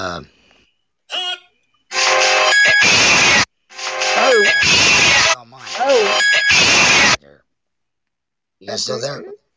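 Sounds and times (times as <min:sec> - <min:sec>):
speech: 0:00.0 - 0:00.4, 0:08.7 - 0:09.4
phone ringtone: 0:01.9 - 0:03.1, 0:03.7 - 0:06.8.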